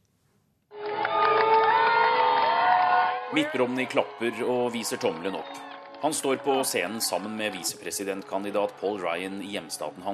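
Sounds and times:
rally crowd cheering: 0.7 - 10.1
shouts and whoops: 0.9 - 7.8
speech: 3.3 - 10.1.

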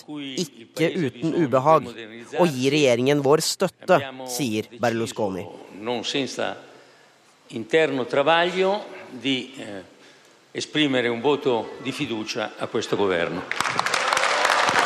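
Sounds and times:
speech: 0.0 - 6.7, 7.5 - 9.9, 10.6 - 13.9
crowd cheering: 13.5 - 14.8.

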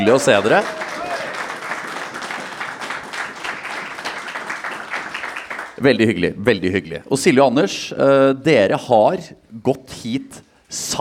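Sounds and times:
speech: 0.0 - 0.8, 5.8 - 10.9
audience applause: 0.0 - 5.8.

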